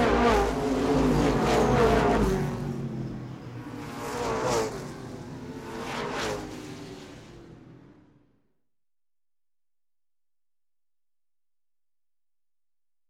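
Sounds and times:
motorbikes passing by: 0.0s - 7.5s.

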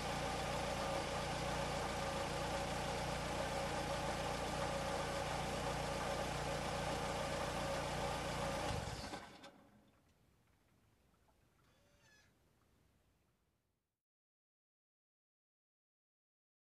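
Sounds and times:
car engine running idle: 0.0s - 9.4s.

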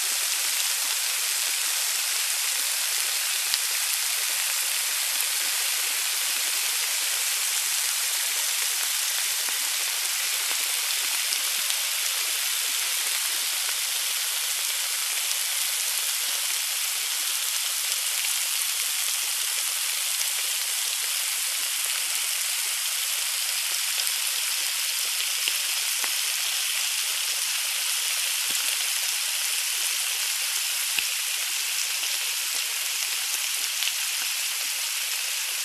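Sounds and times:
food frying: 0.0s - 35.6s.

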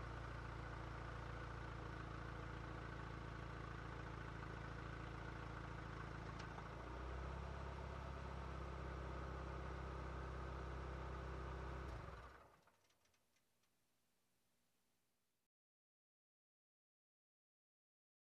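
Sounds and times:
car driving in circles on dirt road: 0.0s - 12.5s.

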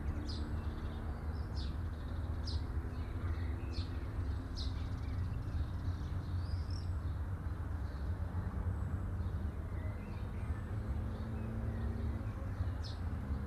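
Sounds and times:
birds chirping at midday: 0.0s - 13.4s.

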